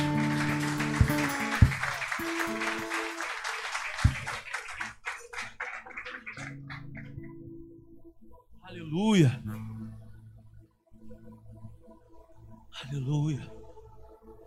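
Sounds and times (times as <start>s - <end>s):
audience applauding: 0.0s - 7.4s
speech: 8.9s - 9.6s, 12.9s - 13.6s.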